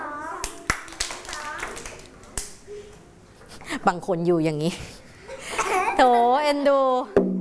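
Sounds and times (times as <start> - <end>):
hand clapping during a waist-twisting exercise: 0.4 - 2.6
speech: 3.8 - 5.0, 6.0 - 7.3.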